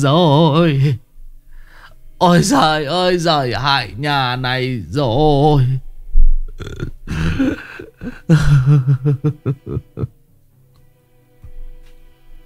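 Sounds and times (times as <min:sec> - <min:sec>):
speech: 0:00.0 - 0:01.0, 0:02.2 - 0:05.9, 0:06.6 - 0:06.9, 0:07.5 - 0:10.2
voice acting out an old woman's hiccuping sob: 0:06.5 - 0:08.6
laughter: 0:07.1 - 0:10.1.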